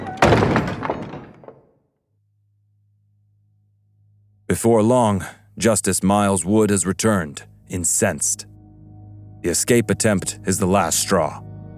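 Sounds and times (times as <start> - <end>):
heavy stockade door slamming shut: 0.0 - 1.6
speech: 4.5 - 8.6, 9.4 - 11.5.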